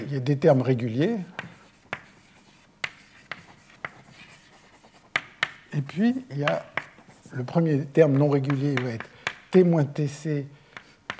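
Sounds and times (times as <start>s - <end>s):
speech: 0.1s - 1.4s, 5.8s - 6.7s, 7.3s - 10.6s
scratchy handwriting strokes writing an equation: 0.5s - 9.6s.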